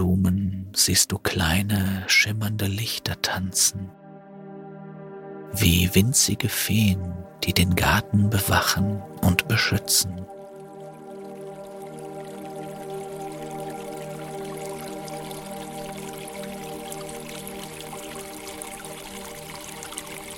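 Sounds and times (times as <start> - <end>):
speech: 0.8 - 4.0, 5.5 - 10.4
gentle splashing of a distant fountain: 10.3 - 20.3.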